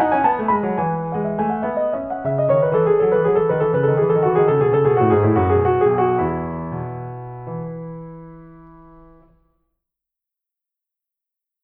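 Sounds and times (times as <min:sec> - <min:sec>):
bourree in E major: 0:00.0 - 0:09.2.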